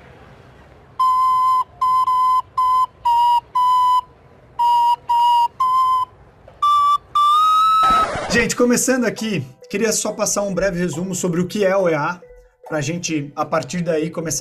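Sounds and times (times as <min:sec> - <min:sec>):
little flute playing: 0:01.0 - 0:08.1
speech: 0:08.5 - 0:14.3.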